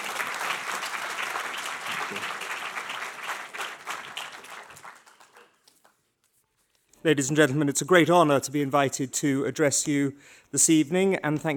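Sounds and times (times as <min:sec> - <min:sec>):
crowd applauding to welcome a speaker: 0:00.0 - 0:05.9
speech: 0:07.0 - 0:11.5.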